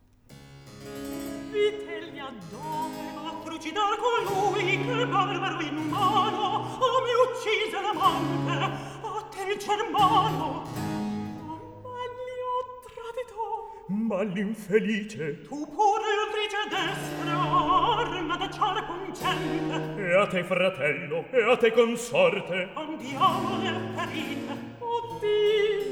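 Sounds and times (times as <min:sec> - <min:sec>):
recitative singing: 0:00.9 - 0:25.8.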